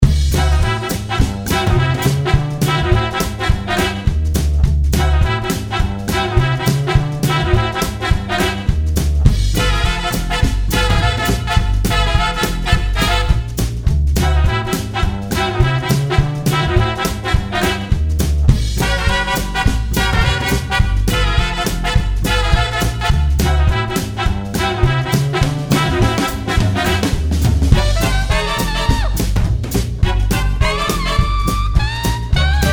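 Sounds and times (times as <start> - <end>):
jazz music: 0.0 - 32.7.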